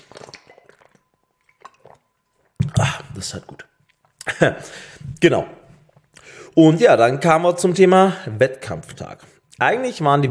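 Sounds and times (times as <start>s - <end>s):
person drinking a sip of water: 0.0s - 6.4s
speech: 3.2s - 5.6s, 6.6s - 10.2s.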